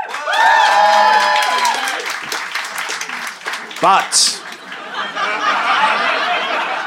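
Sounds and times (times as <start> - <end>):
cheering and whoops: 0.0 - 2.1
live audience applause: 0.0 - 6.8
laughter: 2.9 - 6.8
speech: 3.8 - 4.4.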